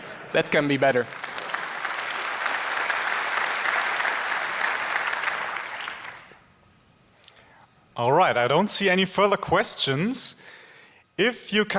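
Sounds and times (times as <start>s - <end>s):
audience applause: 0.0s - 6.4s
speech: 0.3s - 1.2s, 8.0s - 10.6s, 11.2s - 11.7s.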